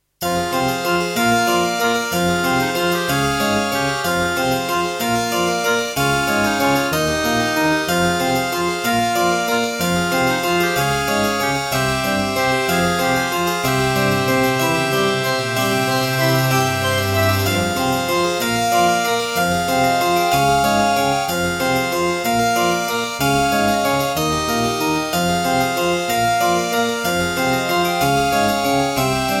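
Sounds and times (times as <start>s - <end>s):
Alesis NanoSynth synthesizer: 0.3s - 29.3s.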